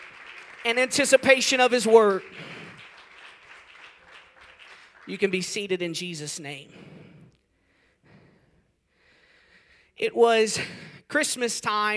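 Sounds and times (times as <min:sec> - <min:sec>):
audience clapping hands: 0:00.0 - 0:06.0
speech: 0:00.6 - 0:02.5, 0:05.1 - 0:07.0, 0:10.0 - 0:11.9.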